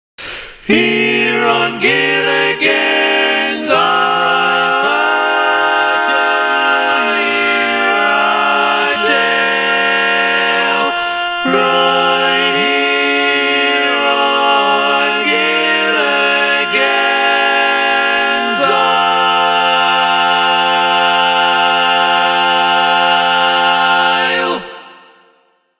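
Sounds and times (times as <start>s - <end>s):
bass voice singing a barbershop tag: 0.7s - 24.0s.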